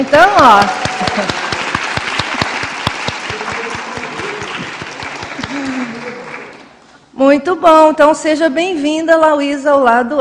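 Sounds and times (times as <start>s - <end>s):
speech: 0.0s - 1.4s, 7.2s - 10.1s
group clapping hands in a ritual circle session: 0.0s - 6.8s
laughter: 0.6s - 6.6s.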